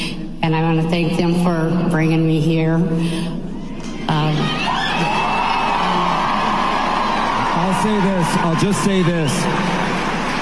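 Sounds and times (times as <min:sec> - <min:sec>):
speech: 0:00.5 - 0:03.5, 0:04.1 - 0:05.2, 0:07.6 - 0:09.8
audience applause: 0:04.5 - 0:10.3.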